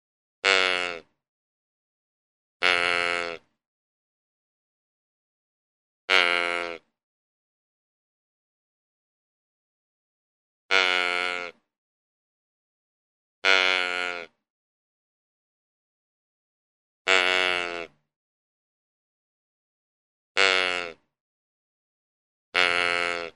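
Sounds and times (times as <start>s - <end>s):
deer giving nasal bleats: 0.4s - 1.1s, 2.6s - 3.5s, 6.1s - 6.9s, 10.7s - 11.6s, 13.4s - 14.4s, 17.1s - 18.0s, 20.4s - 21.0s, 22.6s - 23.3s.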